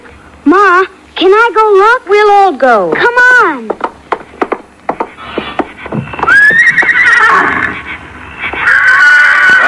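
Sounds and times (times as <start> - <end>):
speech: 0.8 - 3.7
pony neighing: 5.2 - 9.6.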